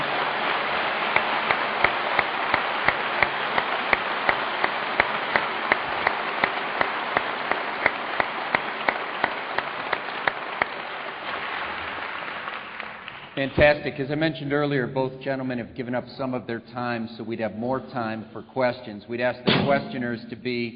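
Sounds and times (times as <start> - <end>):
audience applause: 0.0 - 13.5
speech: 13.4 - 20.7.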